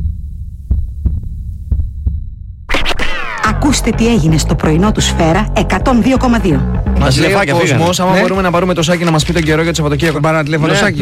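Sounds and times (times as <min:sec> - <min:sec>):
heartbeat sound effect: 0:00.0 - 0:07.0
speech: 0:03.6 - 0:11.0.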